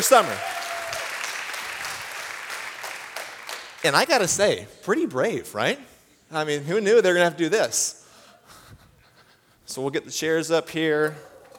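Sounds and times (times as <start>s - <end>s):
speech: 0.0s - 0.5s, 3.8s - 8.0s, 9.7s - 11.3s
audience applause: 0.0s - 4.0s.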